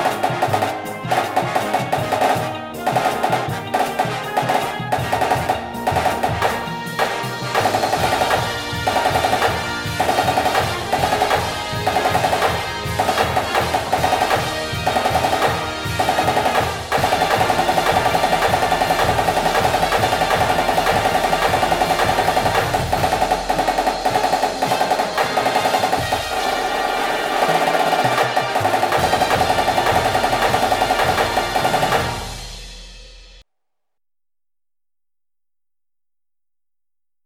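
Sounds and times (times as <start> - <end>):
music: 0.0 - 33.4
snare drum: 0.0 - 33.4.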